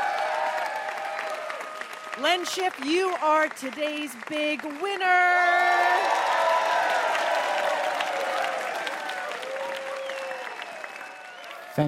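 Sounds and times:
audience applause: 0.0s - 11.8s
speech: 2.2s - 6.1s.

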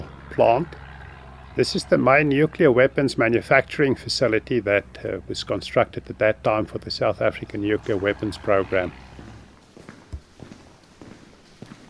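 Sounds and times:
speech: 0.4s - 0.8s, 1.6s - 9.1s
footsteps walking into the Kentron Circle nuclear weapons manufacturing plant, South Africa: 9.0s - 11.8s.

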